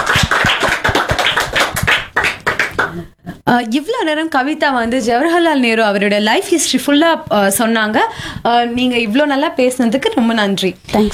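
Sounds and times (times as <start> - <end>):
group clapping: 0.0 - 3.2
speech: 3.5 - 11.1.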